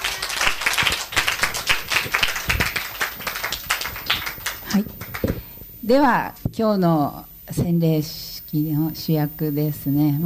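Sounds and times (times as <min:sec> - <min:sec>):
audience clapping: 0:00.0 - 0:05.6
speech: 0:04.8 - 0:05.0, 0:05.9 - 0:10.2.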